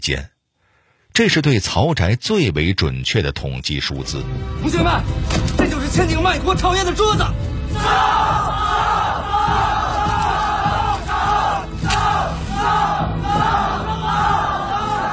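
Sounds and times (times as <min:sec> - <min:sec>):
speech: 0:00.0 - 0:00.3, 0:01.2 - 0:09.7
large crowd shouting in film scene of house burning: 0:07.7 - 0:15.1.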